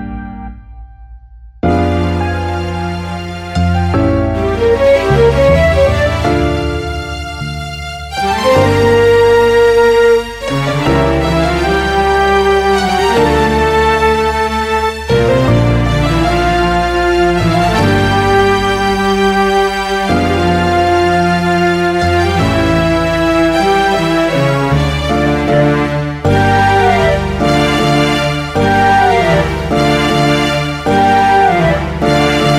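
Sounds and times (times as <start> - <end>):
clarinet: 1.7 - 32.5.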